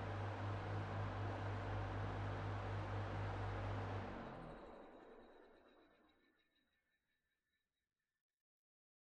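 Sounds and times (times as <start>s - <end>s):
electric fan at far-mid distance: 0.0s - 5.3s.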